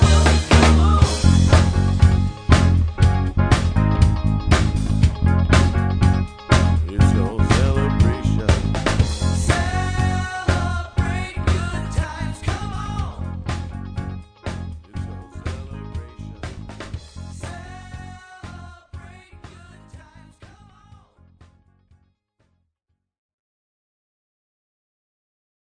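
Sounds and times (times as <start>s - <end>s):
cover band playing: 0.0s - 13.8s, 14.5s - 17.7s.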